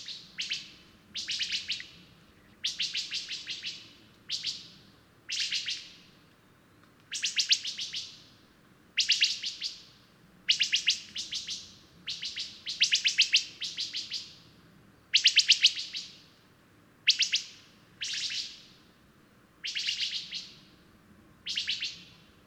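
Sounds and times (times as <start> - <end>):
bird song: 0.0 - 8.4, 9.0 - 14.4, 17.1 - 18.9, 19.6 - 20.7, 21.4 - 22.3.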